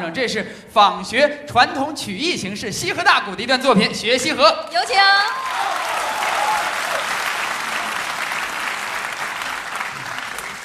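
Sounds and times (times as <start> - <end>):
speech: 0.1 - 5.6
audience applause: 5.2 - 10.6.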